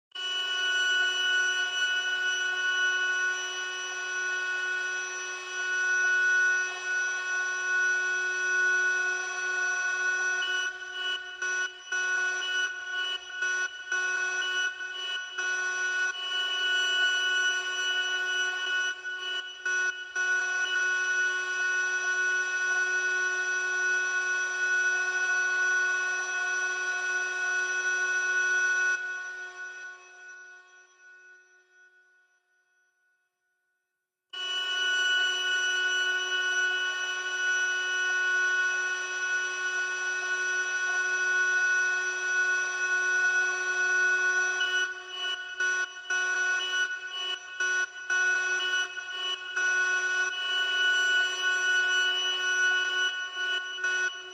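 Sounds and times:
alarm: 0:00.1 - 0:33.5, 0:34.3 - 0:54.3.

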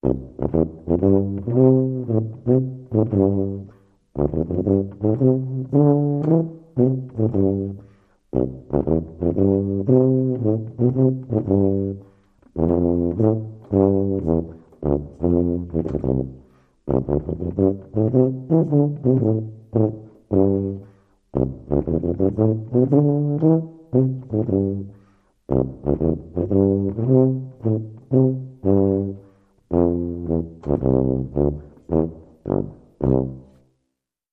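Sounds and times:
tuba shuffle: 0:00.0 - 0:34.3.

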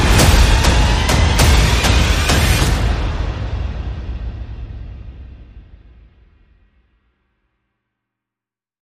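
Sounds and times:
sound effects: 0:00.0 - 0:05.0
percussion: 0:00.0 - 0:07.2.

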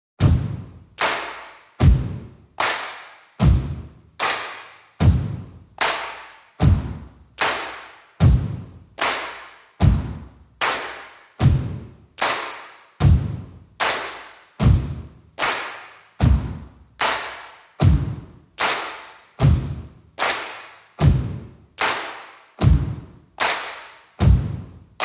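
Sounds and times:
bass: 0:00.2 - 0:01.0, 0:01.8 - 0:02.5, 0:03.4 - 0:04.2, 0:05.0 - 0:05.8, 0:06.6 - 0:07.4, 0:08.2 - 0:09.0, 0:09.8 - 0:10.6, 0:11.4 - 0:12.1, 0:13.0 - 0:13.8, 0:14.6 - 0:15.4, 0:16.2 - 0:17.0, 0:17.8 - 0:18.5, 0:19.4 - 0:20.0, 0:21.0 - 0:21.6, 0:22.6 - 0:23.2, 0:24.2 - 0:25.0
drums: 0:00.2 - 0:01.0, 0:01.8 - 0:02.4, 0:03.4 - 0:04.0, 0:05.0 - 0:05.8, 0:06.6 - 0:07.4, 0:08.2 - 0:09.0, 0:09.8 - 0:10.6, 0:11.4 - 0:11.9, 0:13.0 - 0:13.6, 0:14.6 - 0:15.2, 0:16.2 - 0:16.8, 0:17.8 - 0:18.4, 0:19.4 - 0:20.0, 0:21.0 - 0:21.5, 0:22.6 - 0:23.1, 0:24.2 - 0:24.8.

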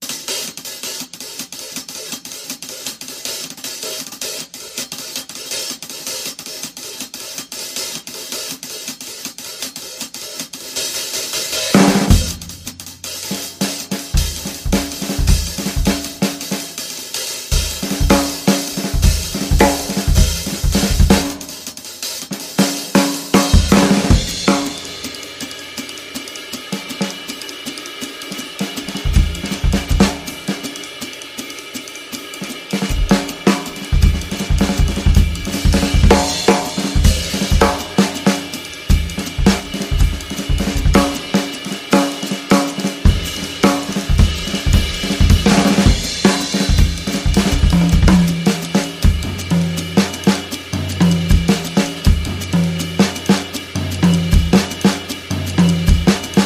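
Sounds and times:
fast jazz: 0:00.1 - 0:56.4.

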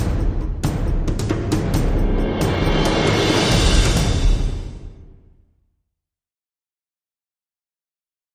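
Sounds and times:
drums and percussion: 0:00.0 - 0:05.4.

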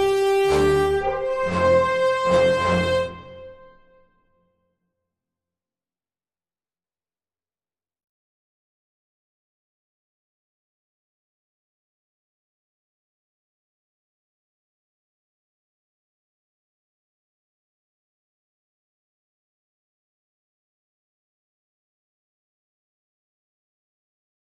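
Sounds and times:
brass instruments: 0:00.0 - 0:04.0.

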